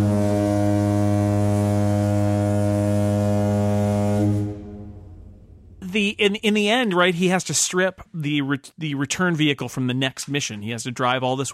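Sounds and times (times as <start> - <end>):
foghorn blast used as a spoiler horn sound effect: 0.0 - 6.0
speech: 6.2 - 11.5.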